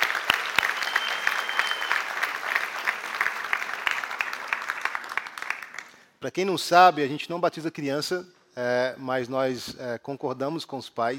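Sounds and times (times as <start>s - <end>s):
audience applauding: 0.0s - 6.0s
speech: 6.2s - 11.1s.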